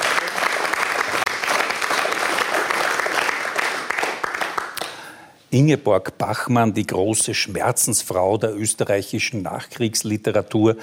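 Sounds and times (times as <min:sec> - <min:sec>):
audience applause: 0:00.0 - 0:05.0
speech: 0:05.5 - 0:10.8.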